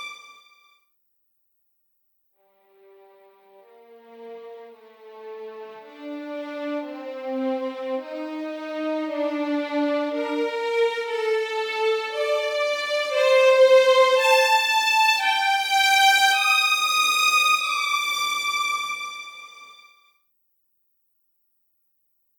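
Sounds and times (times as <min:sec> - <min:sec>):
first violins playing legato: 0:06.0 - 0:19.5.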